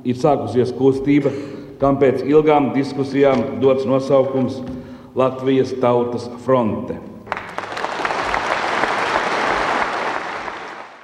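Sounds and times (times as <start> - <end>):
speech: 0.0 - 7.1
congress audience applause: 7.3 - 11.0.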